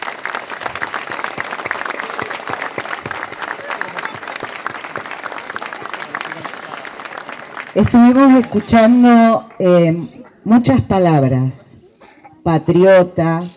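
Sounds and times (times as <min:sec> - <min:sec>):
audience applause: 0:00.0 - 0:09.7
speech: 0:07.7 - 0:11.6, 0:12.4 - 0:13.5.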